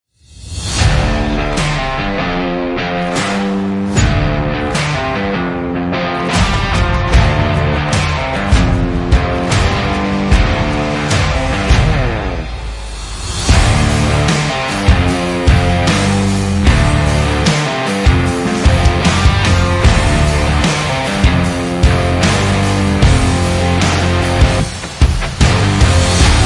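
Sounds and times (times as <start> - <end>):
rock sports opening music: 0.5 - 26.4.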